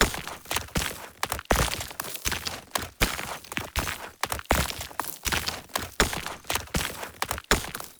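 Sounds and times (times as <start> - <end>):
climbing movement steps on a dirt wall: 0.0 - 7.9.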